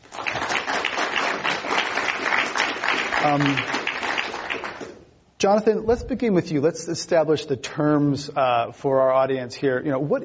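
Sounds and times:
audience applause welcoming three company CEOs to a panel discussion: 0:00.0 - 0:05.0
speech: 0:03.2 - 0:03.8, 0:05.4 - 0:10.2.

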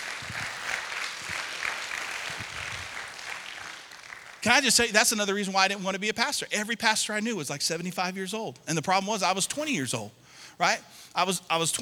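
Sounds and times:
audience applause: 0:00.0 - 0:04.6
speech: 0:04.4 - 0:11.8.

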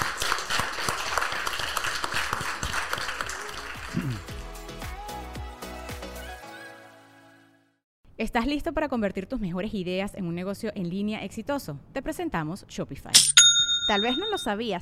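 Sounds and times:
audience applause: 0:00.0 - 0:04.5
speech: 0:08.2 - 0:14.8.

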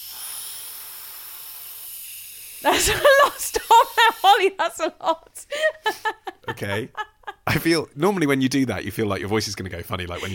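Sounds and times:
breath drawn through an inhaler device: 0:00.0 - 0:04.4
speech: 0:02.6 - 0:10.3
laughter: 0:02.7 - 0:04.4, 0:05.5 - 0:07.6, 0:10.2 - 0:10.3.

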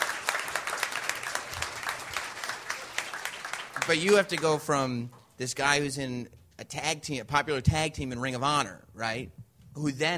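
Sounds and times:
audience applause and cheering: 0:00.0 - 0:04.6
speech: 0:03.9 - 0:10.1.

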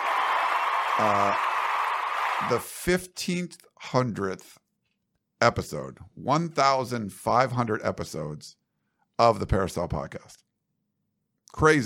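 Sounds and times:
person applauding themself: 0:00.0 - 0:02.7
speech: 0:01.0 - 0:01.5, 0:02.4 - 0:04.6, 0:05.4 - 0:08.6, 0:09.2 - 0:10.4, 0:11.5 - 0:11.8.

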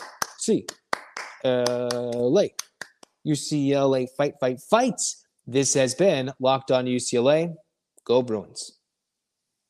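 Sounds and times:
hand claps: 0:00.0 - 0:03.2
speech: 0:00.5 - 0:00.8, 0:01.4 - 0:08.8.

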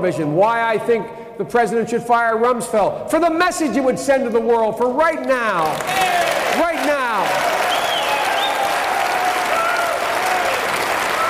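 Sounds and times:
speech: 0:00.0 - 0:07.6
audience applauding a politician: 0:05.6 - 0:11.2.

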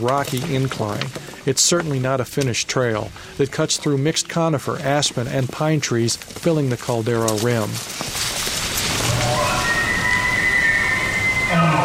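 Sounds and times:
speech: 0:00.0 - 0:08.4
elk calling in the distance: 0:09.1 - 0:11.8.

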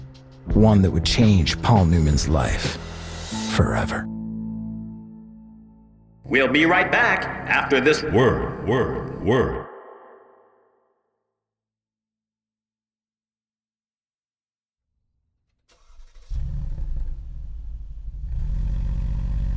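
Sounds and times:
speech: 0:00.4 - 0:02.9, 0:03.6 - 0:04.1, 0:06.3 - 0:09.6
car engine starting and accelerating: 0:15.7 - 0:19.5.

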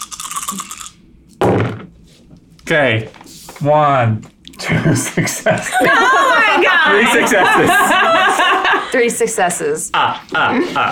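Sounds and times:
handful of dice rattling: 0:00.0 - 0:00.9
speech: 0:00.5 - 0:00.8, 0:02.7 - 0:10.9
laughter: 0:04.6 - 0:09.2, 0:09.9 - 0:10.9.

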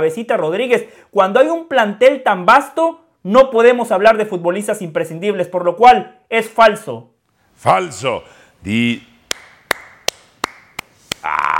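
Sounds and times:
speech: 0:00.0 - 0:09.1
hand clapping: 0:09.2 - 0:11.3.

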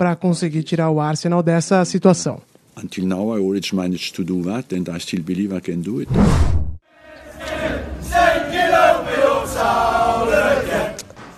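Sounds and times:
speech: 0:00.0 - 0:06.7
Manchester City football fans singing in stadium: 0:06.9 - 0:11.1.

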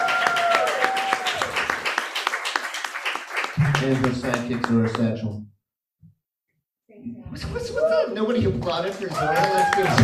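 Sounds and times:
audience applause: 0:00.0 - 0:05.0, 0:08.6 - 0:10.0
speech: 0:03.6 - 0:05.6, 0:07.0 - 0:10.0.

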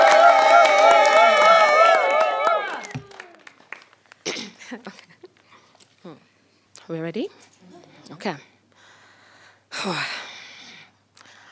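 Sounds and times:
high whoops and shouts: 0:00.0 - 0:03.4
small crowd clapping: 0:00.0 - 0:05.1
speech: 0:07.0 - 0:07.5, 0:08.1 - 0:08.5, 0:09.8 - 0:10.2.

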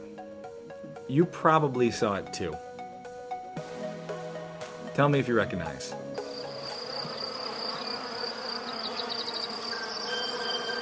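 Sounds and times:
speech: 0:01.1 - 0:02.7, 0:05.0 - 0:06.0
honeybees buzzing: 0:06.0 - 0:10.8.

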